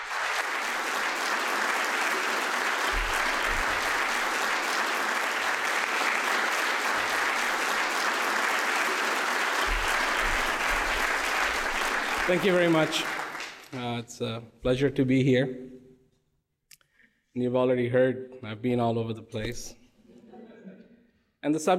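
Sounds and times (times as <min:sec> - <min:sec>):
audience applauding to welcome a guest speaker: 0:00.0 - 0:14.0
speech: 0:12.3 - 0:15.8, 0:17.4 - 0:19.8, 0:21.4 - 0:21.7.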